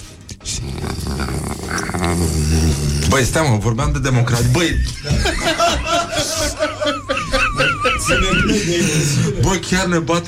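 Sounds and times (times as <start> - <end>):
human voice imitating a terrier's growl: 0.4 - 3.3
speech: 3.1 - 6.4, 8.1 - 10.2
laughter: 4.3 - 9.7.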